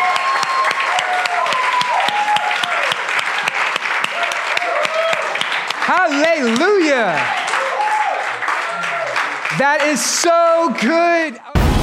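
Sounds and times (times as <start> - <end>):
crowd whooping and cheering: 0.0 - 5.6, 7.0 - 9.4
crowd clapping: 0.0 - 11.0
speech: 9.6 - 11.5.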